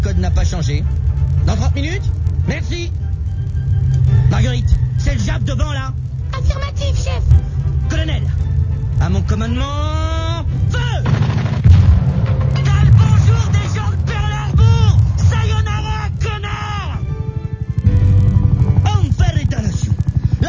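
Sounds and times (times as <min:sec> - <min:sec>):
low engine rumble: 0:00.0 - 0:20.4
speech: 0:00.6 - 0:03.2, 0:09.1 - 0:10.2
heavy tank gun shots: 0:11.0 - 0:14.0
explosions: 0:11.0 - 0:16.3.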